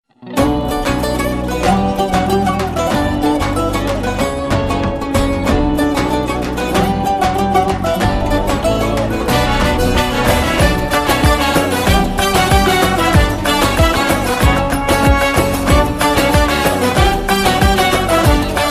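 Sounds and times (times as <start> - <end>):
dance music: 0.5 - 18.6.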